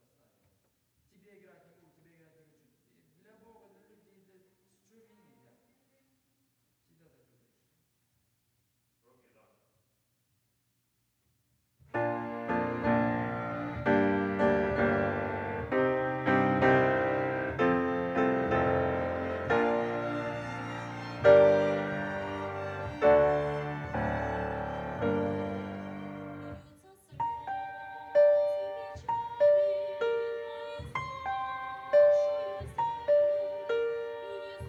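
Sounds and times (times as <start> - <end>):
piano: 11.9 - 34.6.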